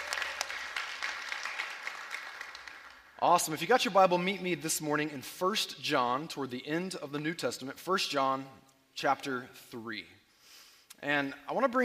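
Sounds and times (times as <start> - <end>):
church congregation applauding guests at a Sunday service: 0.0 - 3.6
speech: 3.2 - 10.2, 11.0 - 11.8.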